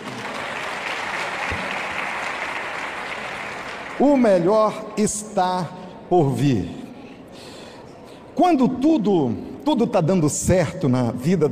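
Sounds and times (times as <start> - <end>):
audience applause: 0.0 - 4.0
speech: 4.0 - 6.8, 8.4 - 11.5.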